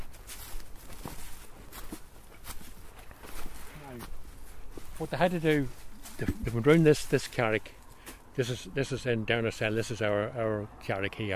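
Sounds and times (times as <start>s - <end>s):
footsteps in wellington boots climbing up an embankment: 0.0s - 8.3s
rustling outdoor background: 0.0s - 11.3s
speech: 5.0s - 7.8s, 8.4s - 11.3s.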